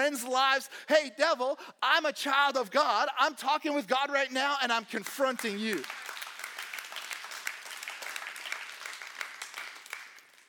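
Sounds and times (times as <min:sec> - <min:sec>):
speech: 0:00.1 - 0:06.0
audience clapping: 0:05.0 - 0:10.4.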